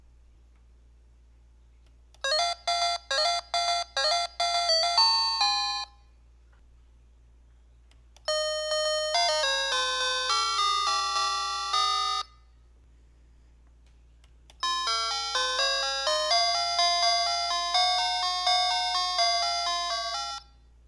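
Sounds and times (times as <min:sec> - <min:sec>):
melody: 0:02.3 - 0:05.9, 0:08.3 - 0:12.3, 0:14.6 - 0:20.5.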